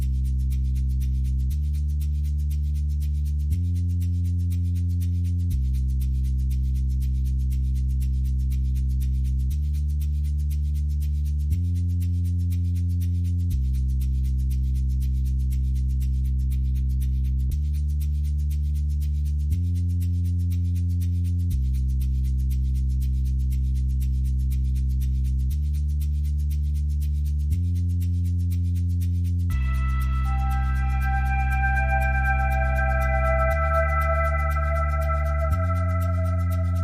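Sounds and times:
bass: 0.0s - 36.8s
percussion: 0.0s - 36.8s.

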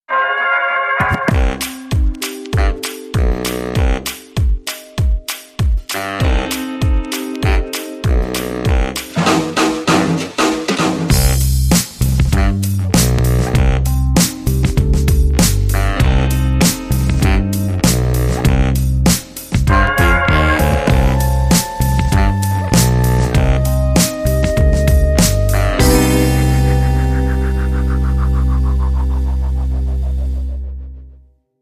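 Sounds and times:
baritone rhythm: 1.0s - 30.9s.

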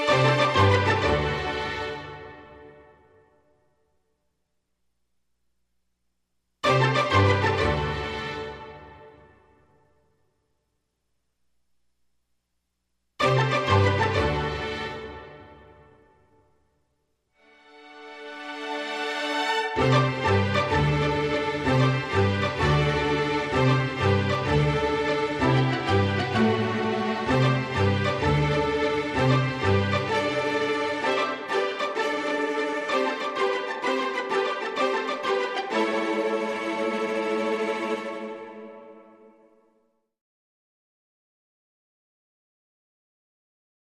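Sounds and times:
synth strings: 0.0s - 3.0s, 6.6s - 9.4s, 13.2s - 16.0s, 17.4s - 39.4s.

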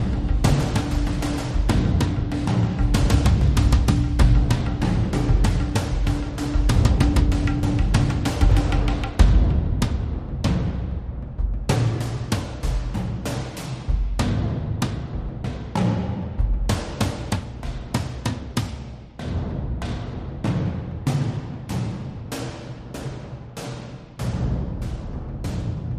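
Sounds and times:
suspenseful war drums: 0.0s - 25.9s.

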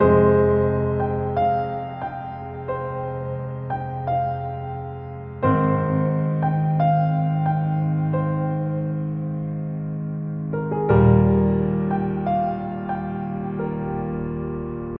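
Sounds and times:
mellow piano: 0.0s - 14.9s.

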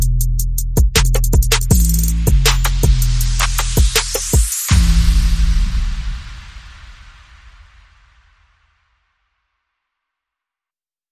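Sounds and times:
bass: 0.0s - 6.4s
percussion: 0.0s - 9.0s.

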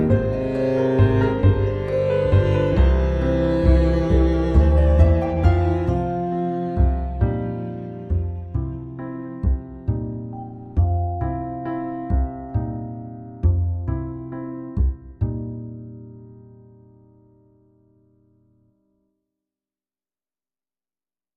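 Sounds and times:
waltz music: 0.0s - 16.0s.

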